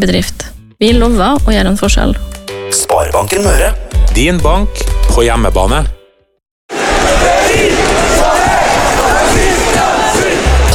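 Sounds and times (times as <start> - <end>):
speech: 0.0 - 5.9
large crowd cheering: 6.7 - 10.7.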